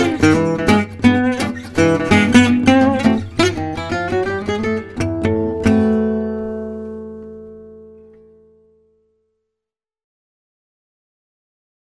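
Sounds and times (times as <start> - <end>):
Manouche gypsy jazz music: 0.0 - 8.0.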